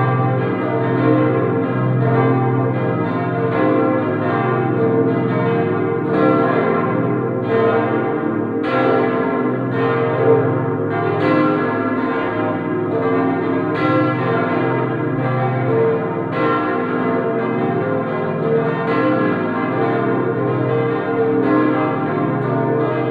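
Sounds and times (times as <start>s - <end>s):
full peal of bells: 0.0s - 23.0s.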